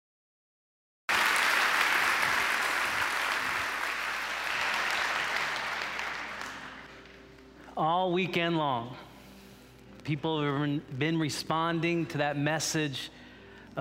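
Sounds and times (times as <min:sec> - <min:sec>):
audience clapping hands: 0:01.1 - 0:07.2
speech: 0:07.8 - 0:09.1, 0:10.0 - 0:13.2.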